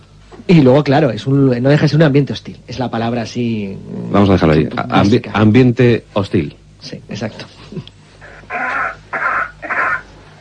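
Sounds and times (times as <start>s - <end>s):
speech: 0.5s - 7.9s
man coughing on Mars: 8.5s - 10.0s.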